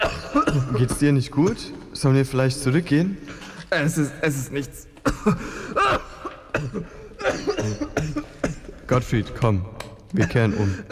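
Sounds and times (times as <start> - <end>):
coughing: 0.0 - 1.9, 5.0 - 9.1, 10.1 - 10.9
speech: 0.3 - 6.0, 6.6 - 8.3, 8.9 - 10.9.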